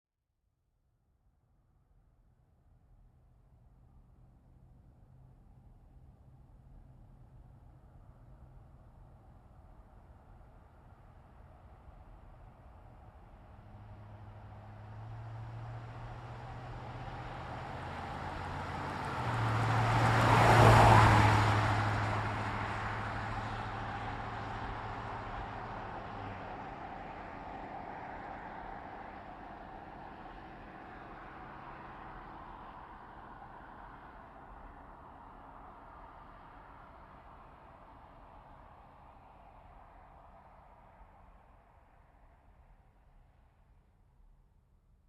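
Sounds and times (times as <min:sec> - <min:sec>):
GMC Savana truck engine: 0:11.2 - 0:38.8.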